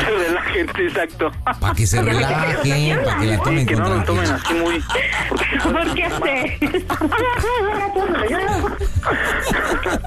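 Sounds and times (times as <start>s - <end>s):
laughter: 0.0s - 10.0s
speech: 0.6s - 10.0s
woman sobbing over the phone: 4.3s - 10.0s.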